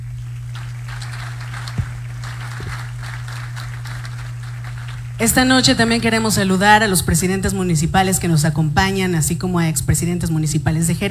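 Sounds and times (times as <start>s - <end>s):
steady welcoming crowd applause: 0.0s - 6.2s
low electrical hum: 0.0s - 11.0s
speech: 5.2s - 11.0s.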